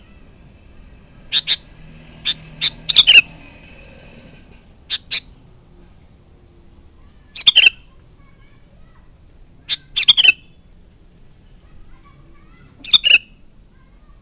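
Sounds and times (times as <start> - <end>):
sooty-headed bulbul chattering: 1.2 - 3.6, 4.8 - 5.4, 7.2 - 9.0, 9.6 - 10.7, 11.7 - 13.5.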